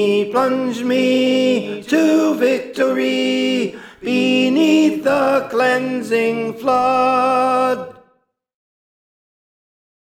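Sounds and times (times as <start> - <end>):
tenor singing: 0.0 - 8.0.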